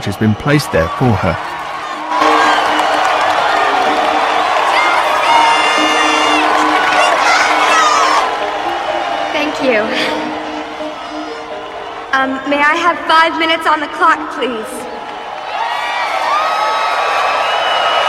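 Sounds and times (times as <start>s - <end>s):
speech: 0.0s - 1.6s, 9.6s - 10.3s, 12.1s - 14.9s
crowd cheering at a baseball field: 0.0s - 18.0s
whoops and excited shouts, some sounding like children: 0.4s - 10.1s, 14.9s - 18.0s.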